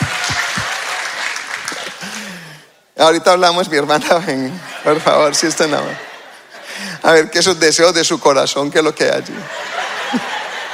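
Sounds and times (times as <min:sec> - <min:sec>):
crowd clapping: 0:00.0 - 0:02.5
speech: 0:03.0 - 0:06.1, 0:07.0 - 0:10.4
laughter: 0:03.9 - 0:07.3, 0:09.2 - 0:10.7.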